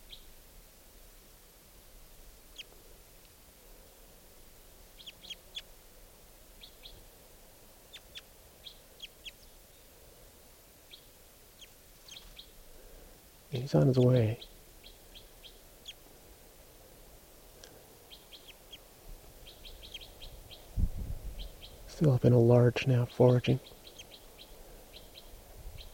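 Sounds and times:
wild bird chirping: 0:00.0 - 0:00.4, 0:02.3 - 0:25.9
steady hiss: 0:00.0 - 0:25.9
speech: 0:13.6 - 0:14.5, 0:22.0 - 0:23.8.

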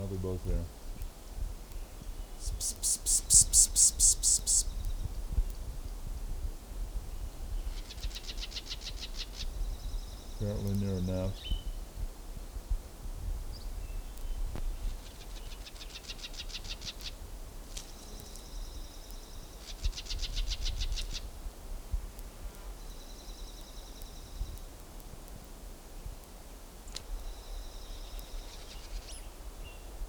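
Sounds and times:
steady hiss of wind: 0:00.0 - 0:30.0
speech: 0:00.2 - 0:00.8, 0:10.4 - 0:11.6
musical notes: 0:02.4 - 0:04.8.

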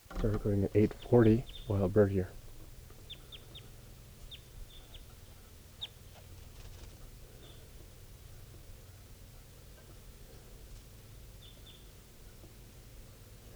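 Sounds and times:
wild adult male bird calling: 0:00.0 - 0:09.0
speech: 0:00.2 - 0:02.4.

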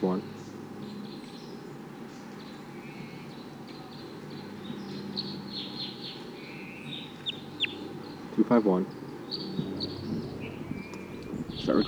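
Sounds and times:
wild bird calls and chirps: 0:00.0 - 0:11.8
low rumble: 0:07.3 - 0:11.8.

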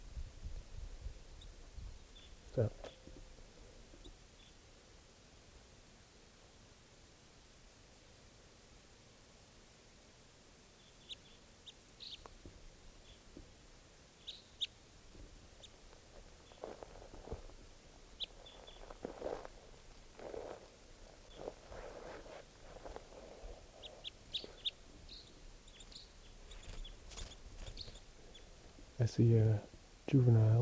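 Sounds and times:
hiss: 0:00.0 - 0:30.6
birds chirping: 0:01.3 - 0:04.7, 0:10.7 - 0:30.6
speech: 0:02.6 - 0:02.9, 0:29.0 - 0:30.6
rustling: 0:15.0 - 0:29.0.

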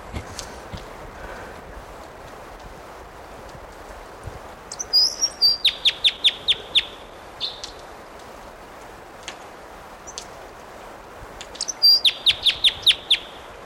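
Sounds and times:
low steady hiss: 0:00.0 - 0:13.6
bird singing: 0:04.7 - 0:07.8, 0:11.6 - 0:13.5.

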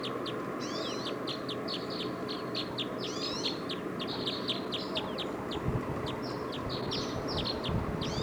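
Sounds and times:
decoy birds calling: 0:00.0 - 0:08.2.

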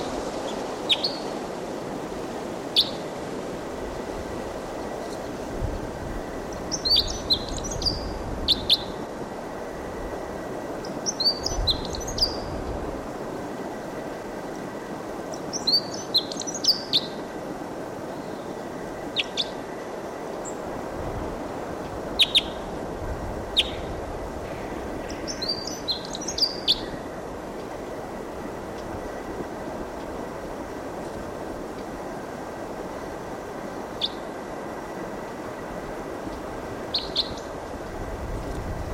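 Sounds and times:
wild bird song: 0:00.0 - 0:01.4, 0:02.8 - 0:03.1, 0:06.5 - 0:09.0, 0:10.8 - 0:12.6, 0:15.3 - 0:17.3, 0:18.0 - 0:19.7, 0:22.2 - 0:22.7, 0:23.6 - 0:27.1, 0:33.8 - 0:34.3, 0:36.3 - 0:37.6
rumble and hiss: 0:00.0 - 0:38.9.

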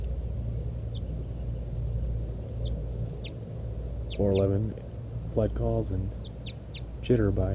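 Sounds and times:
wild bird flight call series: 0:00.2 - 0:04.7, 0:05.9 - 0:07.4.

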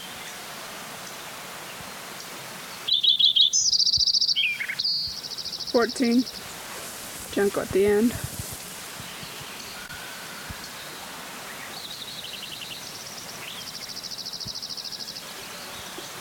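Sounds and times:
several birds singing: 0:02.2 - 0:06.7, 0:08.9 - 0:16.2
speech: 0:05.8 - 0:06.4, 0:07.4 - 0:08.3.

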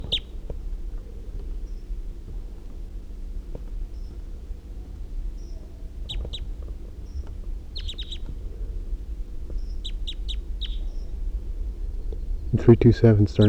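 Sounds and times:
wild male bird chirping: 0:00.0 - 0:00.5, 0:03.9 - 0:13.4
low rumble: 0:00.0 - 0:13.4
speech: 0:12.6 - 0:13.4.

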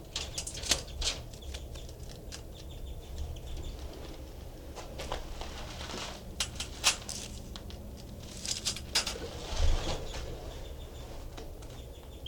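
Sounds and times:
bird mimicking a finch call: 0:00.2 - 0:03.9, 0:10.4 - 0:12.2
soft rustling: 0:03.7 - 0:11.5.

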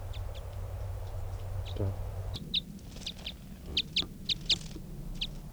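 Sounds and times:
wild bird call: 0:00.1 - 0:05.4
speech: 0:01.8 - 0:02.0.

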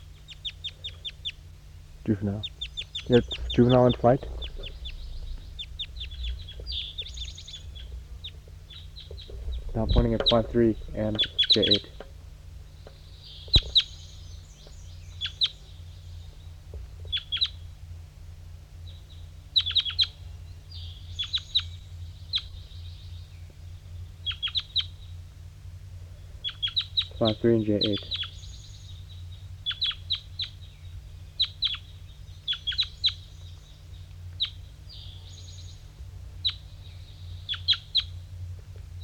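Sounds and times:
wild birds calling: 0:00.0 - 0:39.0
speech: 0:02.0 - 0:04.4, 0:09.8 - 0:12.0, 0:27.2 - 0:28.2.

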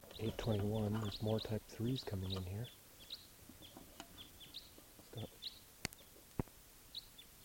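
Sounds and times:
single bird calling: 0:00.0 - 0:06.2
speech: 0:00.2 - 0:02.8, 0:05.2 - 0:05.4.

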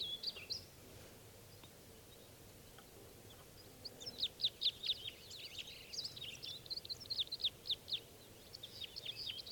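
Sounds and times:
small birds calling in spruce trees: 0:00.0 - 0:00.8, 0:01.4 - 0:09.5.

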